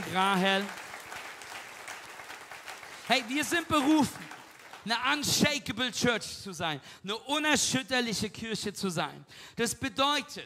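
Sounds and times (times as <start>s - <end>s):
audience clapping: 0.0s - 5.4s
speech: 0.1s - 0.8s, 3.1s - 10.4s.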